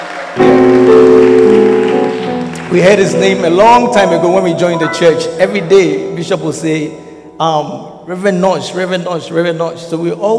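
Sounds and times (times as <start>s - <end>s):
audience clapping: 0.0s - 4.7s
speech: 2.7s - 10.3s.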